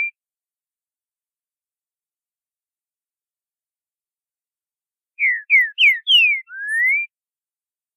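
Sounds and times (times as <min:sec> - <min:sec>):
green-winged saltator song of boiadeiro style: 0:05.2 - 0:07.1.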